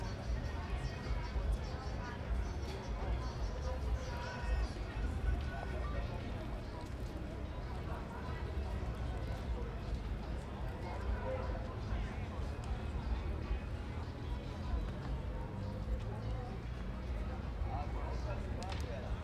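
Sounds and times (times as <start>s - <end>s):
music: 0.0s - 19.2s
people and children talking in a square at night: 0.0s - 19.2s.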